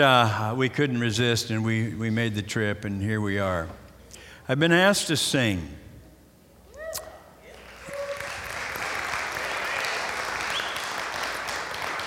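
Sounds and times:
speech: 0.0 - 3.8, 4.5 - 5.8
audience applause: 7.6 - 12.0.

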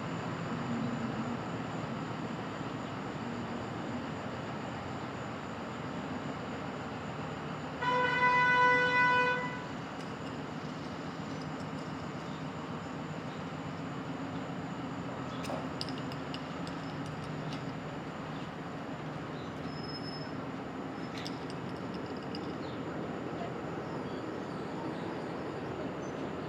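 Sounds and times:
faint high whine: 0.0 - 26.4
street traffic at dawn in Brooklyn: 0.0 - 26.4
loud car horn blaring: 7.8 - 9.7
scattered light clicks and clinks: 10.0 - 12.5, 15.3 - 17.8, 21.0 - 22.8.

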